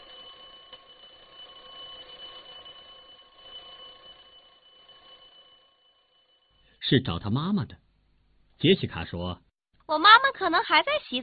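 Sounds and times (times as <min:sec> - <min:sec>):
telephone ringing: 0:00.0 - 0:06.6
speech: 0:06.9 - 0:07.8, 0:08.6 - 0:11.2.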